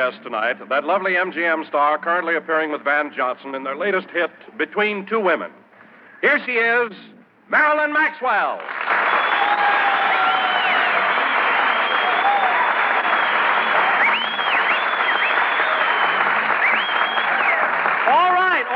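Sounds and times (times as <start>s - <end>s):
speech: 0.0s - 5.6s, 6.2s - 8.8s
audience applause: 8.6s - 18.7s
whistles and cheers: 8.7s - 18.7s.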